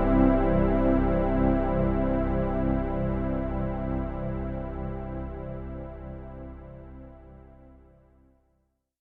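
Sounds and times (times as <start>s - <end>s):
simple synth pad: 0.0s - 8.3s.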